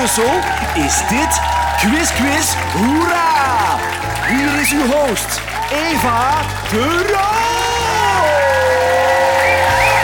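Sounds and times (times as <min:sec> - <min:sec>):
studio audience applauding at a Brussels TV quiz show: 0:00.0 - 0:10.0
speech: 0:00.1 - 0:07.3.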